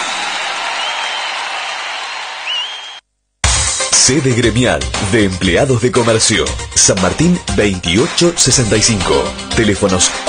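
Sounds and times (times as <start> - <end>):
applause: 0.0 - 3.0
speech: 4.0 - 10.2.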